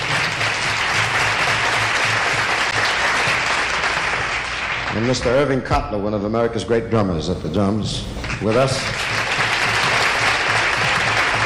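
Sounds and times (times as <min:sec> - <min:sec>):
audience applause: 0:00.0 - 0:05.5, 0:08.2 - 0:11.4
speech: 0:05.0 - 0:09.0.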